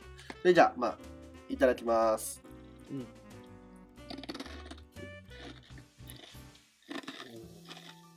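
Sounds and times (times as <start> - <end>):
speech: 0.4 - 3.2
person crunching a hard snack: 4.1 - 8.1.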